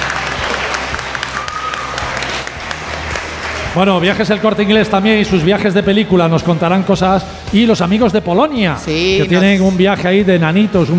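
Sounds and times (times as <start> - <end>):
audience applause: 0.0 - 4.6
speech: 3.7 - 10.9.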